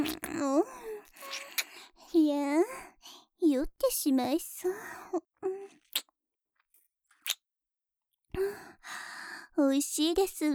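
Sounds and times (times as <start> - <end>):
wet mouth sounds of something being licked up carefully: 0.0 - 0.4
soft voiced breaths and sighs: 0.0 - 3.4, 4.6 - 5.8, 8.3 - 9.6
speech: 4.0 - 5.3, 9.6 - 10.5.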